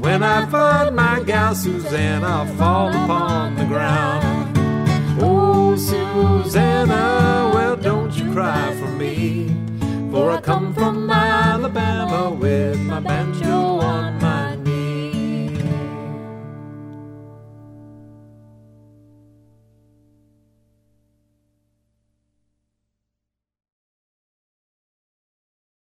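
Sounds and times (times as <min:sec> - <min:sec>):
funny long children's song: 0:00.0 - 0:16.2.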